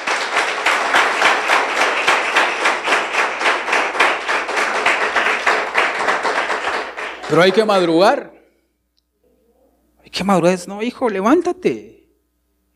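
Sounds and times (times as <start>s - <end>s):
audience applause: 0.0s - 8.2s
speech: 7.3s - 8.3s, 10.1s - 12.0s.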